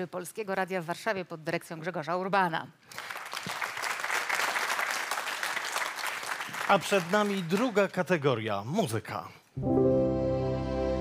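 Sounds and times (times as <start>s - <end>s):
speech: 0.0s - 3.4s, 6.7s - 10.0s
audience applause: 2.9s - 8.0s.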